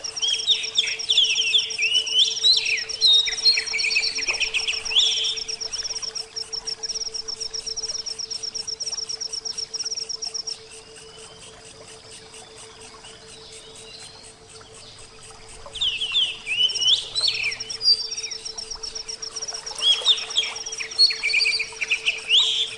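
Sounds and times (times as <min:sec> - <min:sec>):
oriental magpie-robin whistled song: 0:00.0 - 0:05.8, 0:15.7 - 0:22.7.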